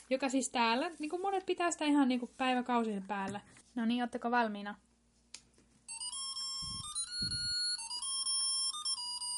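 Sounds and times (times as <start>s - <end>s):
speech: 0.1s - 4.9s
electronic Christmas tree lights beeping: 5.9s - 9.3s.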